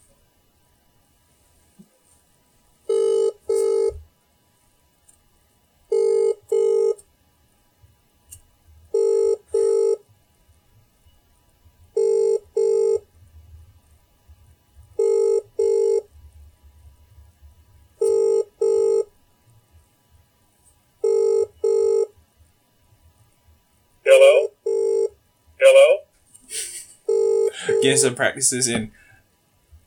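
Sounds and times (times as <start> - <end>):
quiet low noise: 0.0 - 29.8
telephone ringing on an outgoing prank call: 2.9 - 4.0, 5.9 - 7.0, 8.9 - 10.0, 12.0 - 13.1, 15.0 - 16.1, 18.0 - 19.1, 21.0 - 22.1, 24.1 - 26.0, 27.1 - 28.2
speech: 27.8 - 29.0.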